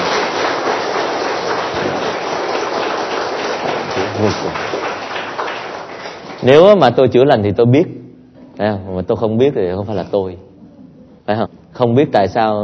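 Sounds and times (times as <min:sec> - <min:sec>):
loud applause from audience: 0:00.0 - 0:06.7
speech: 0:04.2 - 0:04.7, 0:06.4 - 0:08.0, 0:08.6 - 0:10.5, 0:11.3 - 0:12.6.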